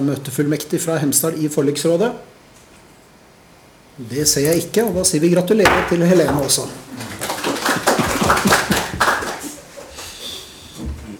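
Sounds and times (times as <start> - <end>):
speech: 0.0 - 2.4, 4.0 - 7.2
council members clapping: 5.7 - 9.6.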